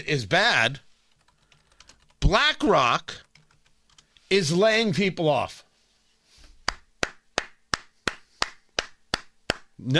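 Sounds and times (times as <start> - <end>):
speech: 0.0 - 0.9, 2.3 - 3.2, 4.3 - 5.6, 9.8 - 9.9
host clapping hands: 6.6 - 9.7.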